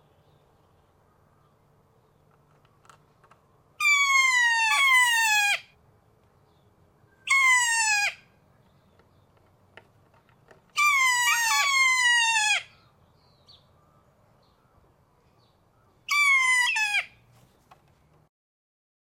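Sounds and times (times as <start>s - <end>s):
kea calling: 3.8s - 5.7s, 7.2s - 8.2s, 10.8s - 12.8s, 16.0s - 17.2s.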